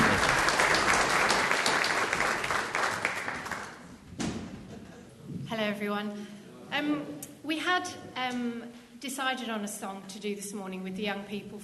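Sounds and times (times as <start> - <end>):
audience applause: 0.0 - 3.9
speech: 5.6 - 11.6.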